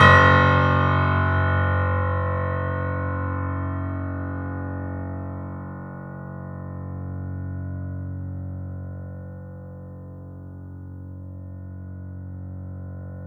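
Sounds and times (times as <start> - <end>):
sustained piano note F sharp: 0.0 - 5.8.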